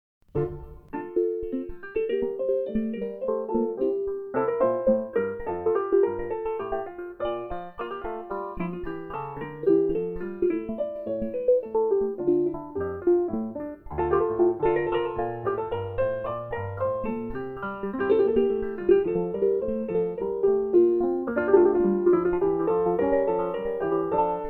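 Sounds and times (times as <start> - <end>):
minuet: 0.3 - 24.4.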